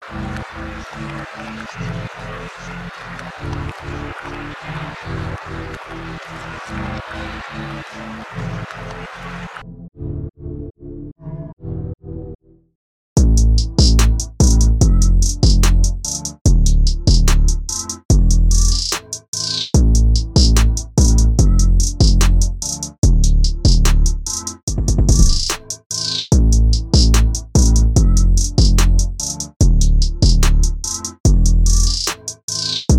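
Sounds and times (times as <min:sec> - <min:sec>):
laughter: 0:00.0 - 0:09.6
trap beat at 146 bpm: 0:13.2 - 0:19.1, 0:19.8 - 0:32.9.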